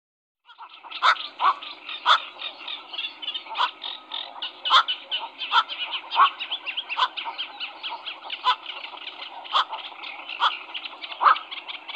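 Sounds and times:
black-crowned night heron squawks: 0.5s - 11.9s.

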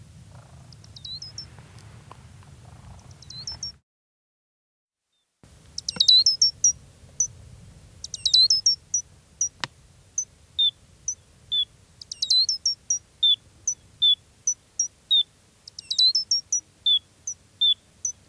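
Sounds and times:
Gray's lark calls: 0.3s - 1.5s, 3.0s - 3.8s, 5.7s - 7.4s, 8.0s - 18.2s.

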